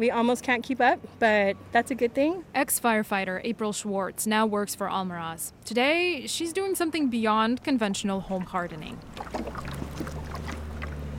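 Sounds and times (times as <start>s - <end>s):
speech: 0.0s - 9.5s
motorized pump droning: 8.4s - 11.1s.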